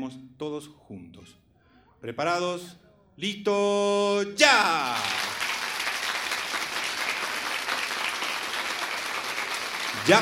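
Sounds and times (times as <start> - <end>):
speech: 0.0 - 1.4, 2.0 - 5.4, 10.0 - 10.2
crowd clapping in unison: 4.8 - 10.2.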